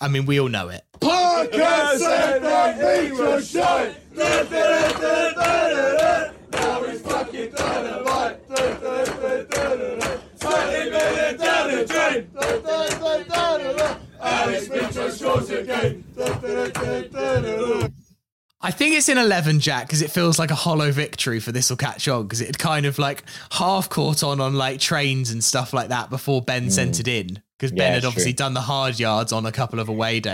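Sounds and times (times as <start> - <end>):
speech: 0.0 - 6.3, 10.6 - 18.0, 18.6 - 30.3
football crowd chanting: 1.0 - 18.0.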